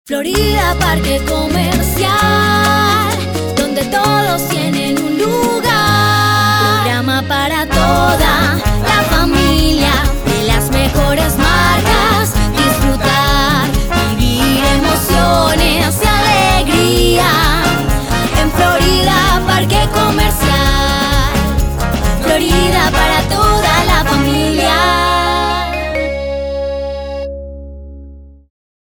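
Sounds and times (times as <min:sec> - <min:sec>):
jingle: 0:00.3 - 0:27.4.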